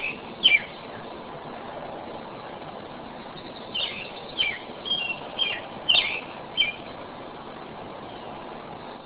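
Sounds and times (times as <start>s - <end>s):
robin singing: 0.0s - 1.1s, 3.2s - 7.0s.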